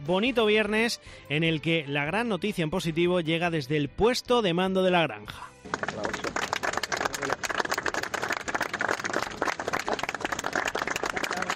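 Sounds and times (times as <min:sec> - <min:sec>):
speech: 0:00.0 - 0:06.4
group applause: 0:05.6 - 0:11.5.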